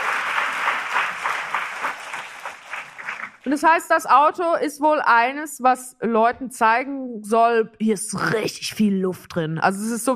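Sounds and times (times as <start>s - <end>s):
audience applause: 0.0s - 3.5s
speech: 3.4s - 10.1s.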